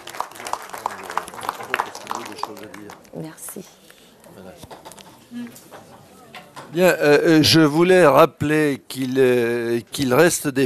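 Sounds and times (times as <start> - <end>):
audience applause: 0.0 - 3.6
speech: 2.5 - 3.8, 4.4 - 10.6.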